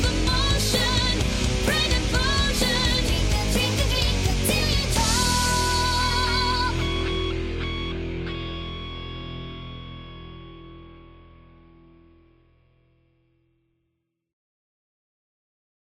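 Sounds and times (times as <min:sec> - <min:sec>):
pop punk music: 0:00.0 - 0:11.9.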